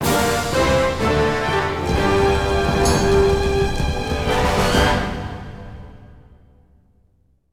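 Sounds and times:
combat victory jingle: 0.8s - 5.4s.

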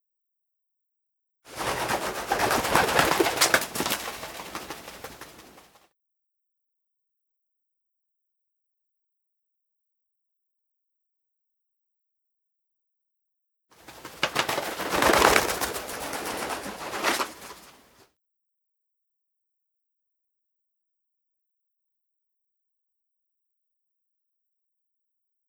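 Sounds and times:
pigeon in Vatican City: 1.5s - 5.8s, 13.8s - 18.0s.

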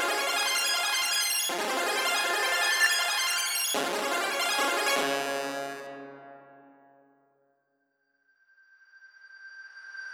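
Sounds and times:
synths: 0.0s - 7.4s.

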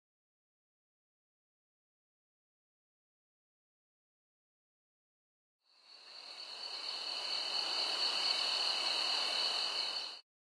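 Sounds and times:
crickets chirping at Christ the Redeemer: 5.8s - 10.2s.

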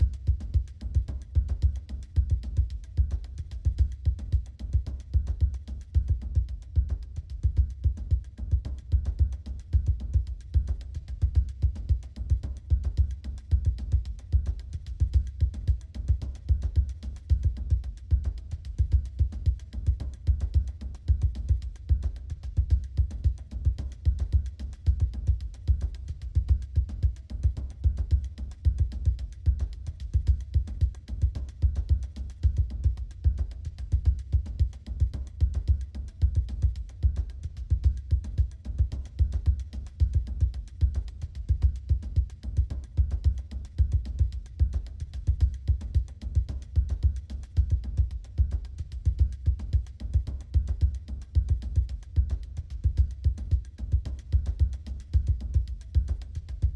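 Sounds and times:
music: 0.0s - 56.7s.

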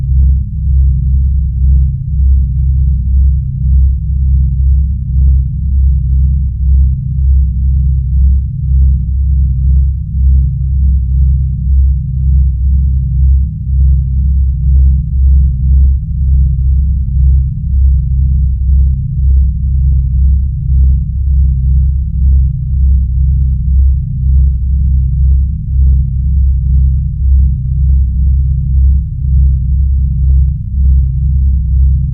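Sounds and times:
ambience: 0.1s - 32.1s.

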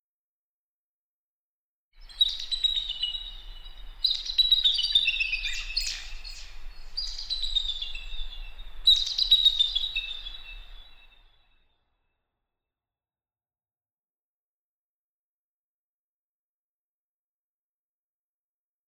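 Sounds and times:
eagles in Yosemite: 2.0s - 11.3s.

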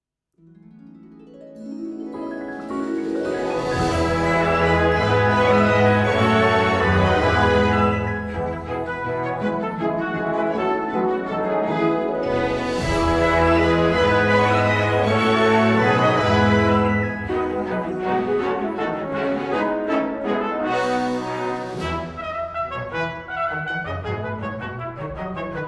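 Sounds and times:
brass celebration music: 2.6s - 25.6s.

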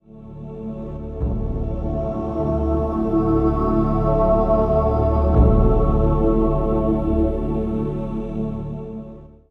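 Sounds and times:
music: 0.0s - 9.4s.

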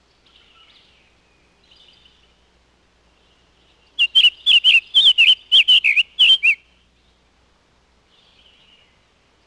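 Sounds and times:
birds: 0.0s - 7.4s, 8.0s - 9.4s.

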